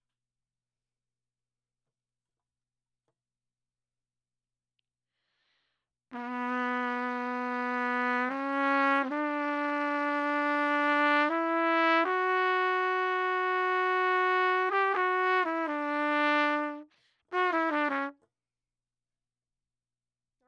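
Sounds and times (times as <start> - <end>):
horn: 6.1 - 18.3.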